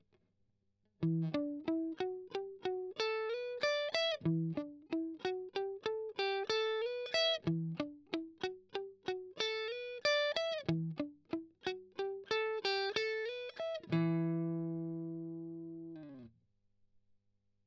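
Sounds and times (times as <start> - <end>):
strummed octave arpeggio: 1.0 - 16.3.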